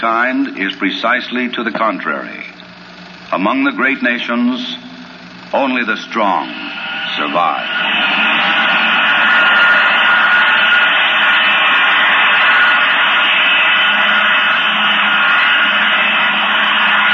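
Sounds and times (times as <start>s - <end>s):
speech: 0.0s - 2.6s, 3.3s - 4.9s, 5.5s - 8.2s
B-52 heavy bomber jet engines roaring: 6.2s - 17.1s.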